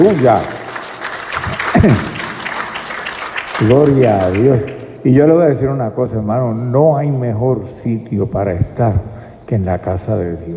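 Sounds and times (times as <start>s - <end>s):
speech: 0.0s - 0.6s, 1.8s - 2.1s, 3.6s - 10.5s
church congregation applause during a morning service: 0.0s - 5.0s.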